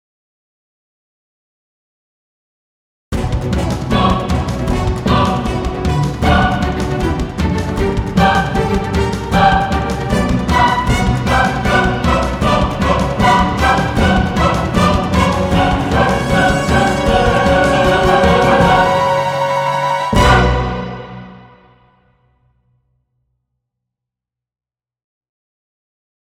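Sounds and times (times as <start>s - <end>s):
epic music: 3.2s - 22.0s.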